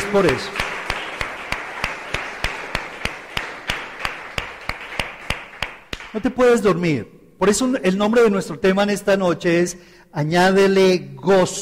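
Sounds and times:
audience applause: 0.0 - 5.9
speech: 0.1 - 0.6, 6.1 - 11.6.

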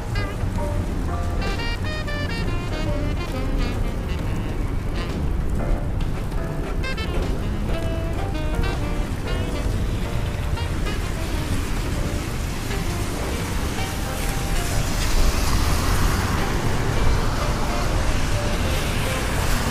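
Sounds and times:
rain and traffic in New York: 0.0 - 19.7
vehicle passing: 0.0 - 19.7.

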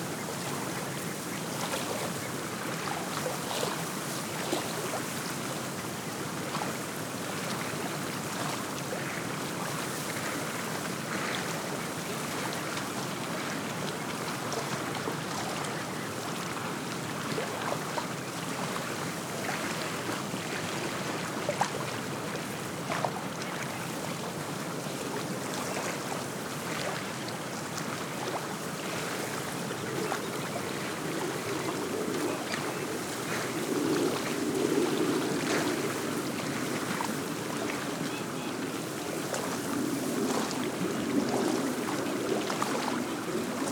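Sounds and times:
small wind waves lapping against a tule-lined shore of Big Lake: 0.0 - 43.7.

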